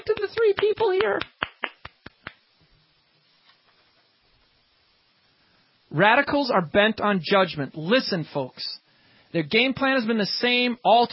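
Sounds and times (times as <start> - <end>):
speech: 0.0 - 1.4, 5.9 - 11.1
few people clapping: 0.0 - 2.4.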